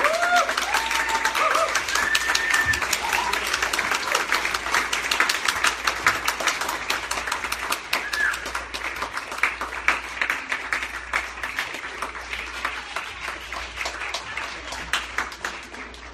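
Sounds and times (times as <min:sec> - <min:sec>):
faint cheers: 0:00.0 - 0:04.3
audience applause: 0:00.0 - 0:16.1.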